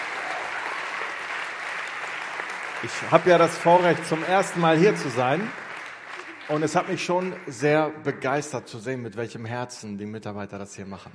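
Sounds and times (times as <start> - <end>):
audience applause: 0.0 - 8.5
speech: 2.8 - 5.6, 6.5 - 11.1.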